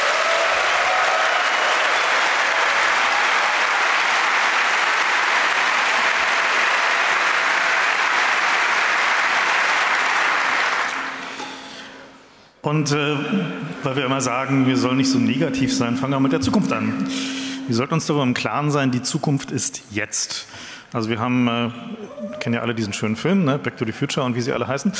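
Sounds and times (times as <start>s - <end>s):
audience applause: 0.0s - 11.7s
speech: 12.6s - 24.9s.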